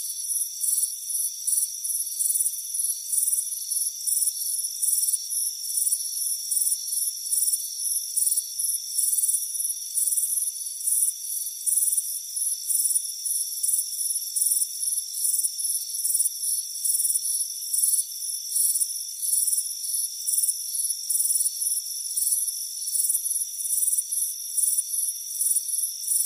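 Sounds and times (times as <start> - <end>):
crickets chirping: 0.0 - 26.2.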